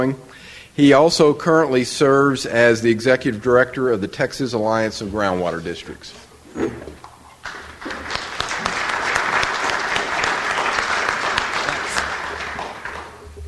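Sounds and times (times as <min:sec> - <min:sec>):
speech: 0:00.0 - 0:07.0
audience applause: 0:07.4 - 0:13.4.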